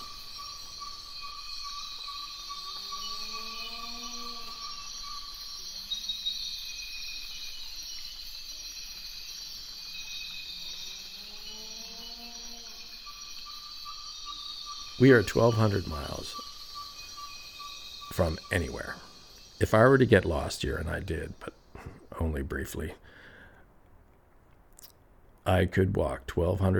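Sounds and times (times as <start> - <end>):
rising wavering animal calls: 0.0 - 6.4, 10.6 - 22.1
insect chorus in Ecuadorian Amazon rainforest: 0.0 - 26.7
speech: 15.0 - 16.5, 18.2 - 21.6, 22.2 - 23.2, 25.5 - 26.7.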